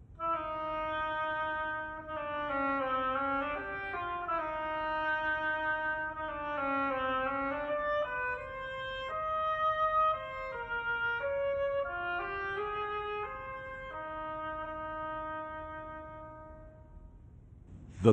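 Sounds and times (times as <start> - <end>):
oboe playing: 0.2 - 16.8.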